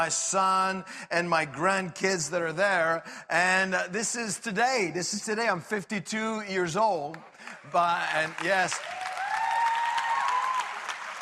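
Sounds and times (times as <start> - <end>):
speech: 0.0 - 9.0
audience applause: 7.4 - 11.2.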